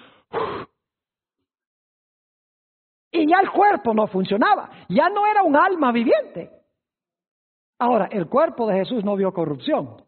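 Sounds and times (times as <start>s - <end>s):
person imitating a dying person's last breath: 0.0s - 0.7s
speech: 3.2s - 6.6s, 7.8s - 10.0s.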